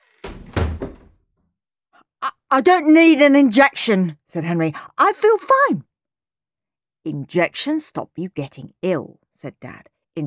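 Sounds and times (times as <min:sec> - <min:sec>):
door closing: 0:00.0 - 0:01.2
speech: 0:02.5 - 0:05.9, 0:07.0 - 0:10.2.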